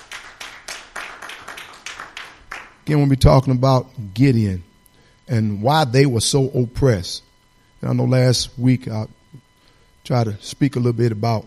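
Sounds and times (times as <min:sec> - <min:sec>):
church congregation clapping as a praise offering: 0:00.0 - 0:02.9
speech: 0:02.9 - 0:04.7, 0:05.3 - 0:09.4, 0:10.0 - 0:11.4.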